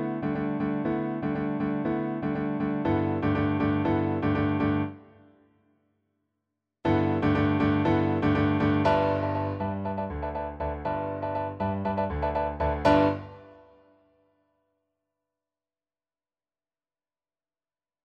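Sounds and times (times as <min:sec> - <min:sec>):
piano: 0:00.0 - 0:05.6, 0:06.8 - 0:14.0.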